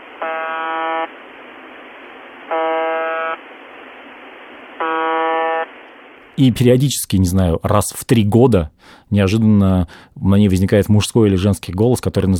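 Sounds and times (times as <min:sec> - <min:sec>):
monotone buzz of shortwave radio station the buzzer: 0:00.0 - 0:06.2
speech: 0:06.4 - 0:12.3.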